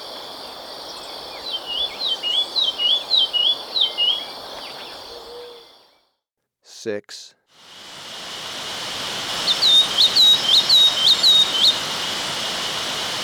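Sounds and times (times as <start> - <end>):
insect hiss: 0.0 - 6.1, 7.5 - 13.2
olivaceous greenlet slurred song: 0.0 - 6.1, 9.4 - 12.0
speech: 6.8 - 7.4.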